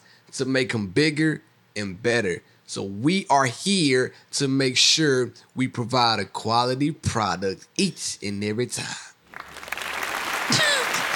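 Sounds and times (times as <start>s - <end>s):
speech: 0.3s - 9.1s
round of applause: 9.3s - 11.1s.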